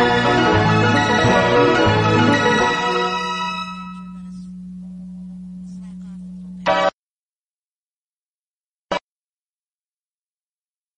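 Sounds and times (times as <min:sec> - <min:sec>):
instrumental music: 0:00.0 - 0:05.8.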